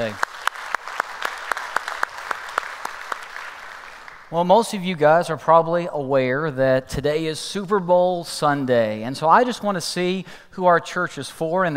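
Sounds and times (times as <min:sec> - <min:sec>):
speech: 0:00.0 - 0:00.3, 0:04.3 - 0:11.7
church congregation applauding: 0:00.0 - 0:04.4
sharp evenly spaced claps: 0:00.0 - 0:04.4.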